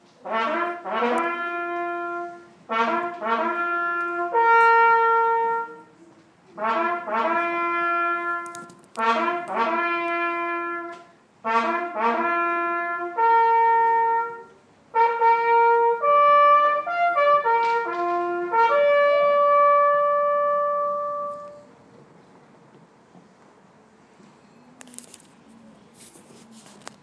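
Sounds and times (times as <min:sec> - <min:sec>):
bugle call: 0:00.3 - 0:05.9, 0:06.6 - 0:21.7.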